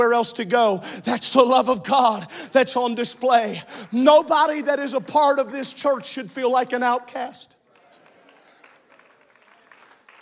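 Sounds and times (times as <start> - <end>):
speech: 0.0 - 7.6
faint audience applause: 7.6 - 10.1.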